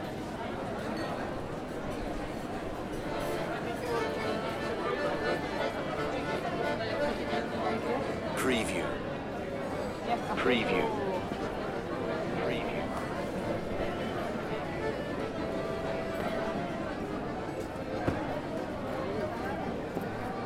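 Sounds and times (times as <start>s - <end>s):
city street ambience: 0.0s - 20.4s
accordion playing: 3.0s - 9.0s, 10.4s - 17.8s.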